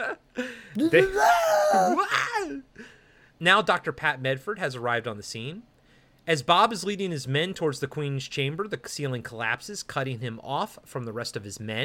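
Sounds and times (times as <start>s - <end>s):
speech: 0.4s - 2.6s, 3.4s - 5.7s, 6.3s - 11.8s
Wilhelm scream sound effect: 0.8s - 2.6s.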